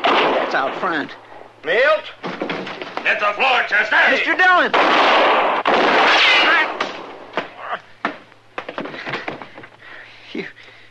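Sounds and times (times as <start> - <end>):
gunshots in a shootout: 0.0 - 0.8, 4.7 - 7.5
speech: 0.5 - 2.4, 3.0 - 6.8.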